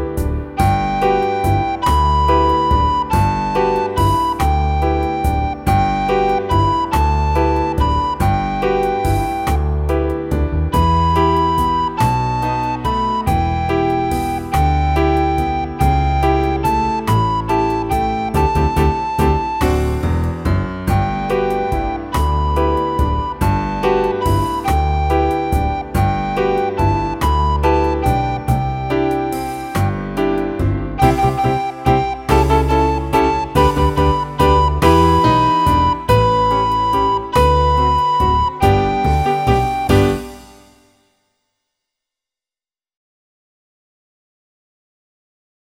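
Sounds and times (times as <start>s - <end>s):
recorder playing a waltz: 0.2s - 40.6s.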